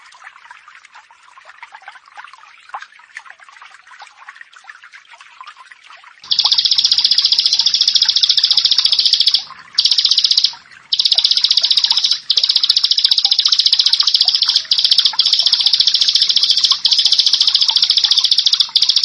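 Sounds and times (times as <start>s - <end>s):
bar-winged prinia song: 6.3s - 19.0s
soft background chirping: 6.3s - 19.0s.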